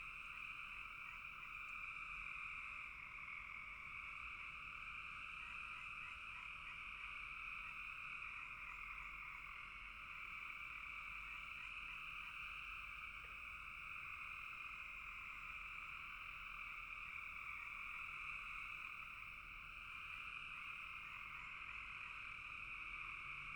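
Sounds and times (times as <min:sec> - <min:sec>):
frog chorus trilling: 0:00.1 - 0:23.5.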